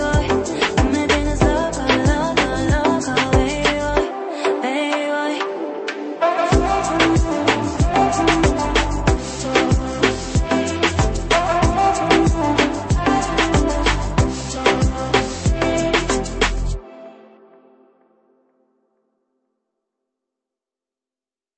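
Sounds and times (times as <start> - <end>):
tropical reggaeton music: 0.0 - 17.0.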